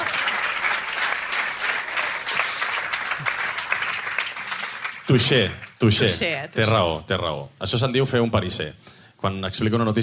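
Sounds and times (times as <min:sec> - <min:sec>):
audience applause: 0:00.0 - 0:06.2
speech: 0:05.1 - 0:10.0.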